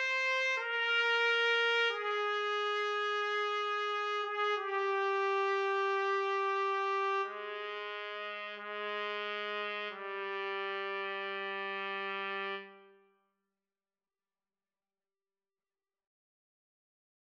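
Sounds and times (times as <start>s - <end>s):
trumpet duet: 0.0s - 13.0s.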